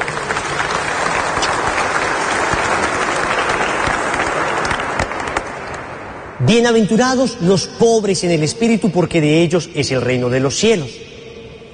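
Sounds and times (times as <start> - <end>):
audience applauding: 0.0 - 5.9
speech: 6.5 - 11.1.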